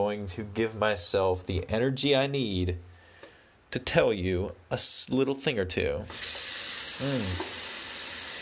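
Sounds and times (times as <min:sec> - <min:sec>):
speech: 0:00.1 - 0:02.9, 0:03.7 - 0:07.6
strong stream of water pouring from a kitchen faucet: 0:06.1 - 0:08.3.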